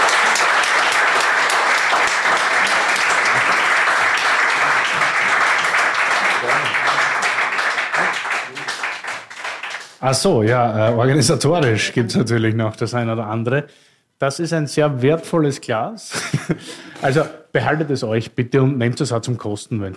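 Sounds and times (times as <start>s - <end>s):
audience applause: 0.0s - 10.6s
speech: 10.0s - 19.9s.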